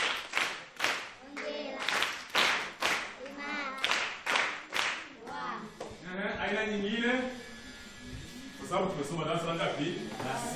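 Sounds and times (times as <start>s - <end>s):
school class clapping for a pupil: 0.0s - 5.4s
speech: 6.5s - 7.4s, 8.7s - 10.5s.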